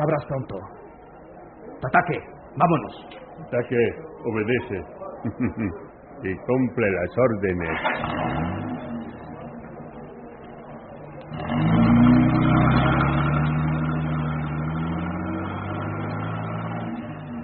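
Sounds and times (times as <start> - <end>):
speech: 0.0 - 0.9, 1.8 - 8.4
laughter: 5.0 - 6.0
car engine starting: 7.6 - 17.4.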